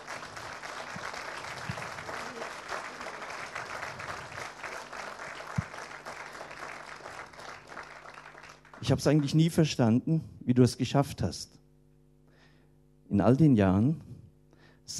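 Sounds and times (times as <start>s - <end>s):
audience clapping: 0.0s - 9.6s
speech: 8.8s - 11.6s, 13.1s - 14.1s.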